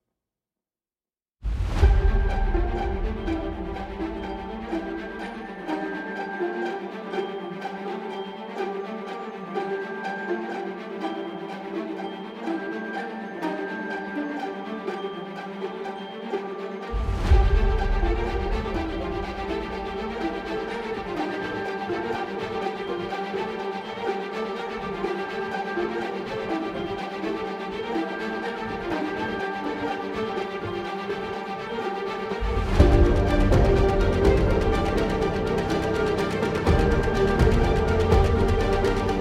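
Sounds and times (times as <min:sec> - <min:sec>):
instrumental music: 0:01.5 - 0:39.1.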